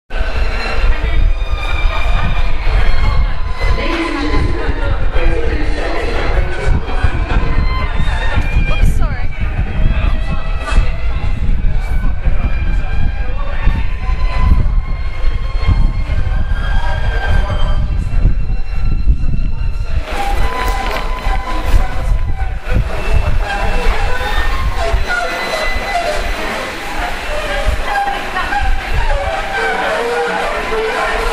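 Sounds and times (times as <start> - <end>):
violinist playing in St Paul's tube station: 0.2 - 31.3.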